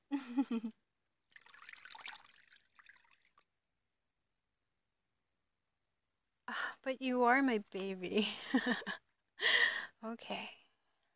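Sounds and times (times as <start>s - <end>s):
speech: 0.2s - 0.8s, 6.9s - 10.6s
water trickling and dripping while a body is washed: 1.2s - 3.5s.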